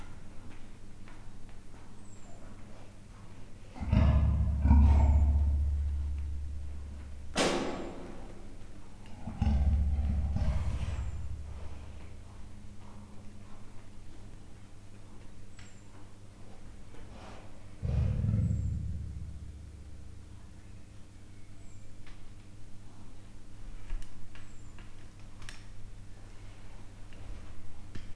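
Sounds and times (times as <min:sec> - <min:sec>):
captive male and female leopards growling: 0:03.6 - 0:13.7, 0:17.1 - 0:21.0.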